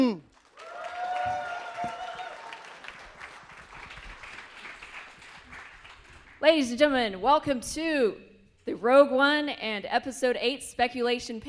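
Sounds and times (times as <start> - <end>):
audience at a Star Wars convention panel applauding: 0.3 - 6.4
speech: 6.4 - 11.4.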